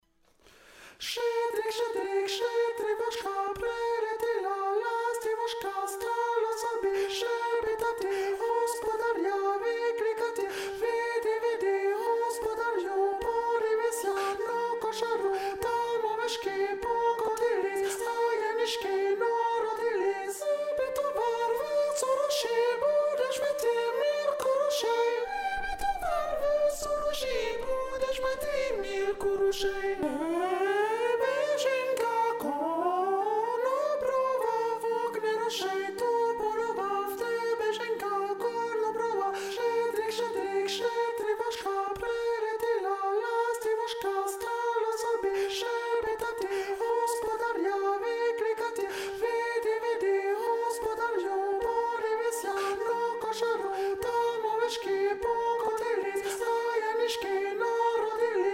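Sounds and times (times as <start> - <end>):
soprano voice: 1.0 - 58.5.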